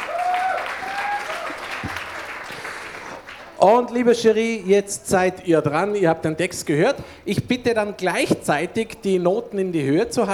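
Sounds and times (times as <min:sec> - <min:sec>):
audience applause: 0:00.0 - 0:03.6
speech: 0:03.6 - 0:10.3.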